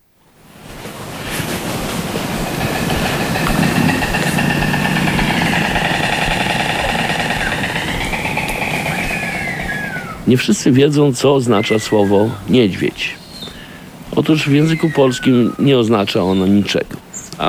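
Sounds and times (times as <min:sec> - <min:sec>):
honeybee colony buzzing inside a hive: 0:00.7 - 0:11.4
speech: 0:10.3 - 0:13.2, 0:14.2 - 0:17.4.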